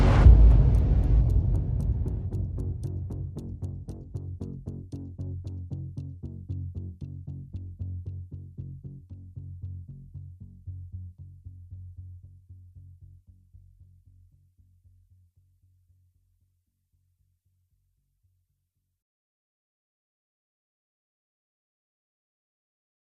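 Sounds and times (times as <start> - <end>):
drum and bass music: 0.0 - 10.9.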